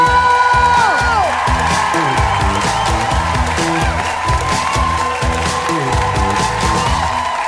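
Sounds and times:
bass-heavy music track: 0.0s - 7.4s
crowd cheering and applauding: 0.0s - 7.4s.

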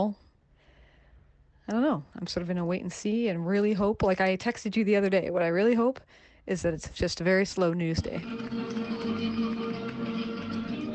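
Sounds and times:
speech: 0.0s - 0.2s, 1.7s - 8.9s
crowd applause and cheering: 8.2s - 10.9s.

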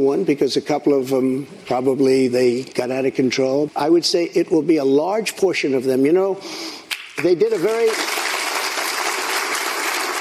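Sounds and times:
speech: 0.0s - 8.2s
audience applause: 7.5s - 10.1s.

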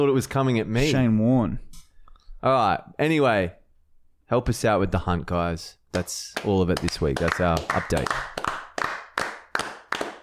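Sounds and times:
speech: 0.0s - 1.8s, 2.4s - 3.6s, 4.3s - 8.3s
hands clapping: 5.9s - 10.2s.

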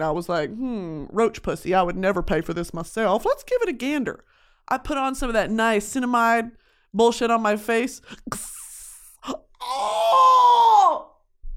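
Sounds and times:
speech: 0.0s - 8.6s, 9.2s - 11.1s
Wilhelm scream: 9.6s - 11.2s.

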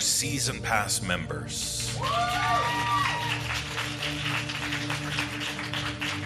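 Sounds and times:
speech: 0.2s - 3.7s
thin scattered applause from a live audience: 1.8s - 6.2s
whistle or whoop: 2.0s - 3.4s.

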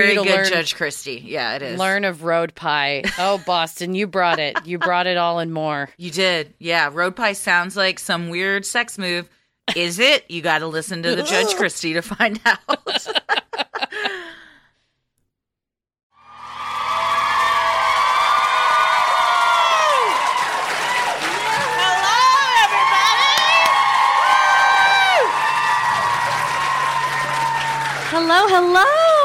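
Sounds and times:
speech: 0.0s - 14.4s, 28.4s - 29.1s
laughter: 4.2s - 5.0s, 11.1s - 14.3s
large crowd cheering and applauding: 16.2s - 29.2s
whoops and high shouts: 16.4s - 28.0s, 28.8s - 29.2s.

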